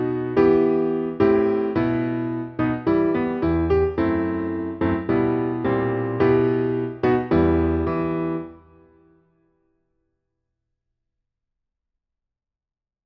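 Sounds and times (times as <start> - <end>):
musical accompaniment: 0.0 - 8.9.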